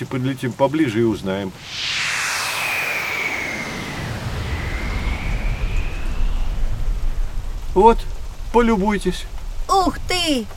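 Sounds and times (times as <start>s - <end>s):
speech: 0.0s - 2.0s, 7.8s - 10.5s
faint high whine: 1.5s - 10.5s
low rumbling: 1.5s - 10.5s
very heavy rain in a thunderstorm: 7.3s - 10.5s.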